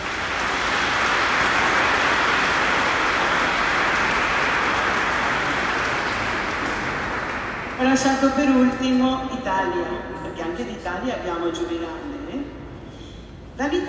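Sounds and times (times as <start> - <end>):
audience applause: 0.0 - 8.2
speech: 7.8 - 12.4, 13.6 - 13.8.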